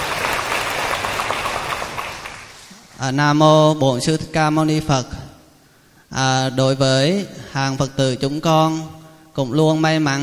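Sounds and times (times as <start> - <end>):
applause: 0.0 - 2.6
speech: 3.0 - 5.2, 6.1 - 10.2.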